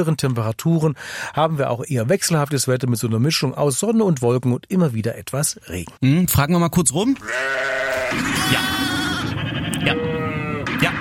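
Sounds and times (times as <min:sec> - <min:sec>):
speech: 0:00.0 - 0:10.0
several sheep bleating: 0:07.2 - 0:10.6.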